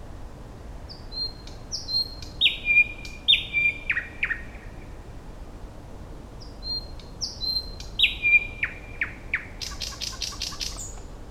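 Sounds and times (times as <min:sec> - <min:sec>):
thrush nightingale Luscinia luscinia singing: 0:00.9 - 0:05.0, 0:06.4 - 0:11.1.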